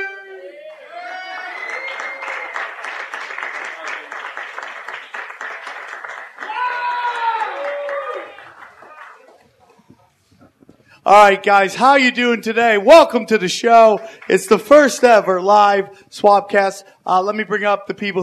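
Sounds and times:
audience applause at a live comedy show at the Ice House: 0.6s - 9.7s
man talking loudly: 11.1s - 18.2s
speech: 11.1s - 18.2s.

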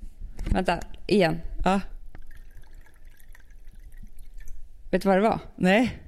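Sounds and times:
speech: 0.5s - 1.9s, 4.9s - 6.0s
wine being poured: 2.0s - 4.9s.

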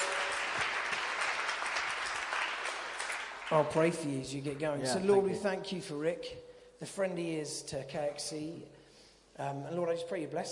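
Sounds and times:
audience at a church gathering applauding to welcome a guest speaker: 0.0s - 4.7s
speech: 3.5s - 8.8s, 9.4s - 10.4s.

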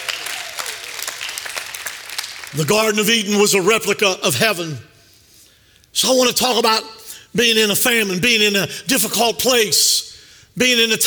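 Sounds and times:
audience hand clapping: 0.0s - 2.7s
speech: 2.5s - 4.9s, 6.0s - 11.0s.

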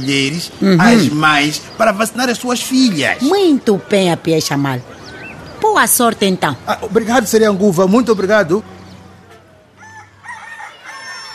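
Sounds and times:
speech: 0.0s - 5.0s, 5.8s - 8.7s
rooster crowing: 9.3s - 11.3s.

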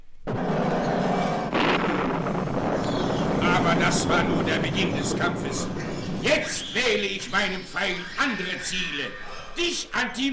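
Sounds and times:
thunder clap: 0.2s - 8.1s
speech: 3.8s - 10.3s.

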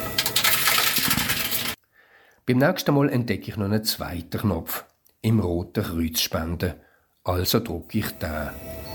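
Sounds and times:
bottle deposit return machine paying out coins: 0.2s - 1.8s
speech: 2.5s - 8.9s.

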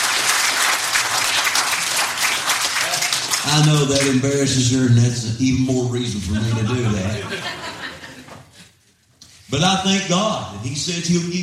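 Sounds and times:
audience round of applause: 0.0s - 4.3s
speech: 3.5s - 7.6s, 9.5s - 11.4s
laughter: 6.2s - 8.7s.

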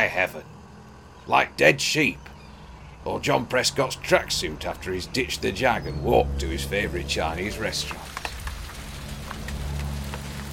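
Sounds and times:
speech: 0.0s - 0.6s, 1.3s - 2.3s, 3.0s - 8.2s
low rumbling: 2.2s - 10.5s
steady rain pouring: 4.6s - 10.5s.

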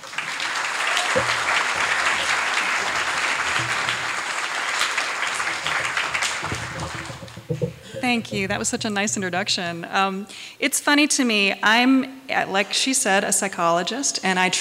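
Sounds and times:
audience applause greeting a speaker at a talk session: 0.0s - 9.6s
speech: 1.2s - 1.4s, 8.0s - 14.5s.

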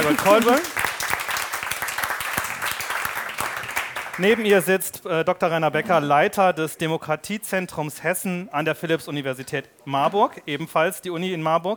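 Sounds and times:
audience applause: 0.0s - 4.5s
speech: 0.1s - 0.8s, 4.2s - 11.7s.

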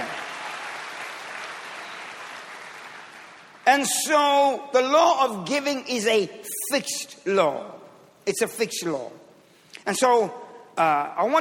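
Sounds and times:
audience clapping hands: 0.0s - 3.6s
speech: 3.7s - 11.3s.

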